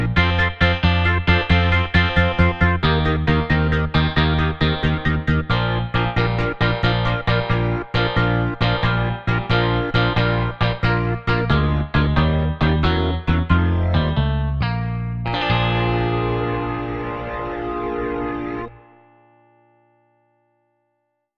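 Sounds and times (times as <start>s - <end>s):
shuffle groove music: 0.0s - 18.7s.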